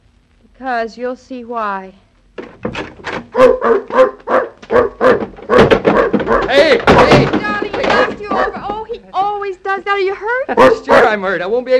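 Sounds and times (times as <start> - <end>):
speech: 0.6 - 2.0, 3.4 - 5.4, 6.5 - 7.6, 9.3 - 11.7
dog barking: 3.3 - 7.2, 7.9 - 8.6, 10.6 - 11.2.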